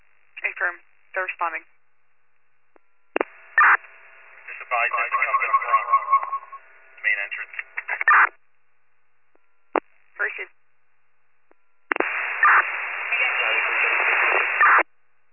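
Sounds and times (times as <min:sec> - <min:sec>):
speech: 0:00.6 - 0:01.8
radio static: 0:03.2 - 0:08.4, 0:09.8 - 0:10.5, 0:11.9 - 0:14.9.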